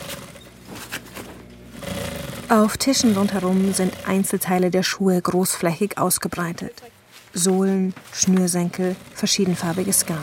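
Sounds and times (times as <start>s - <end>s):
old sewing machine stitching thin fabric onto carpet pieces: 0.0s - 0.5s, 1.8s - 4.4s, 8.2s - 10.2s
speech: 2.5s - 10.2s.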